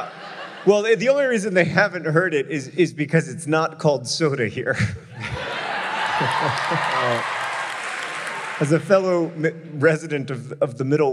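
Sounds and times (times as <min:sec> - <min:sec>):
laughter: 0:00.0 - 0:01.8, 0:04.6 - 0:07.7
speech: 0:00.0 - 0:05.4, 0:06.2 - 0:07.4, 0:08.6 - 0:11.1
audience applauding: 0:05.5 - 0:09.4.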